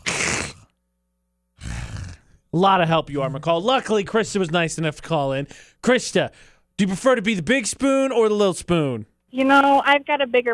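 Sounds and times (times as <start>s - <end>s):
cat hissing: 0.0s - 0.7s
speech: 2.5s - 10.5s.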